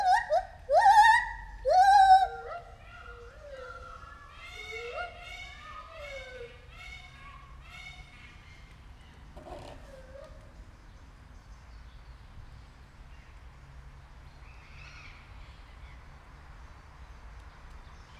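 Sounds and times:
white-handed gibbon whooping and hooting at a zoo: 0.0 - 6.7.

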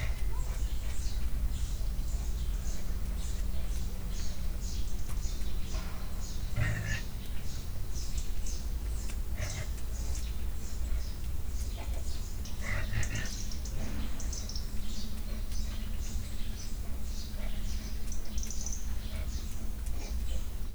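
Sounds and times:
annoyed caracal: 0.0 - 20.7.

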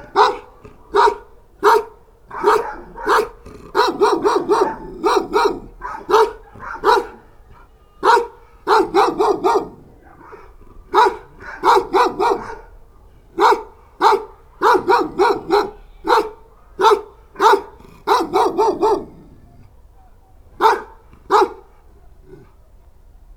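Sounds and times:
guard dogs barking in a farmyard: 0.0 - 22.9.

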